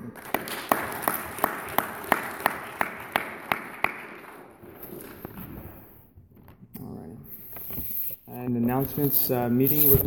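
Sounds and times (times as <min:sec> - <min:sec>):
round of applause: 0:00.0 - 0:04.8
speech: 0:08.8 - 0:10.0.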